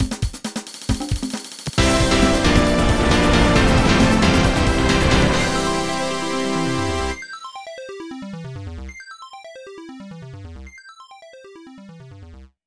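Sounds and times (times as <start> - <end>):
castle level clear jingle: 1.8 - 7.3.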